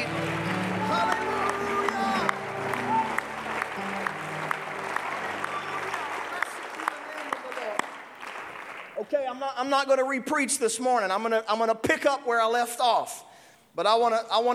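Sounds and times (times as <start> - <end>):
audience clapping: 0.0 - 9.4
audience shouting: 0.3 - 6.3
speech: 9.6 - 14.5.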